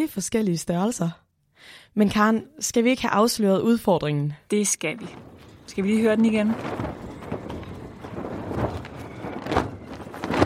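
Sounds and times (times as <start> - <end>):
speech: 0.0 - 7.0
sail flapping in the wind: 4.8 - 10.4.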